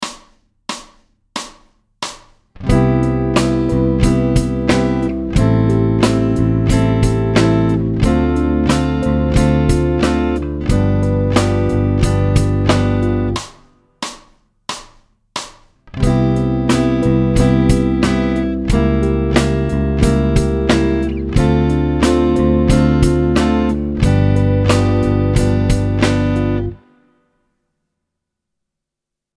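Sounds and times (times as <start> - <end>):
musical chord: 2.7 - 13.4, 16.0 - 26.9.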